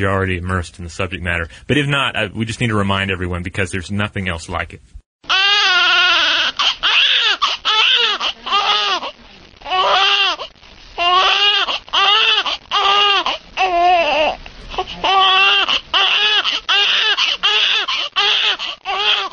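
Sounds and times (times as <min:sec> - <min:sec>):
speech: 0:00.0 - 0:05.0
infant screaming and crying: 0:05.3 - 0:19.3.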